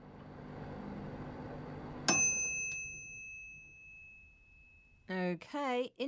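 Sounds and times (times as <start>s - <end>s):
microwave oven hum while heating: 0.0s - 4.6s
microwave oven ping when heating is done: 2.0s - 4.8s.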